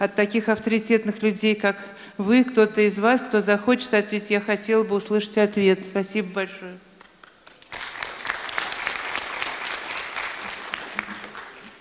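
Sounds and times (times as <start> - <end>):
speech: 0.0 - 6.9
audience applause: 7.2 - 11.7.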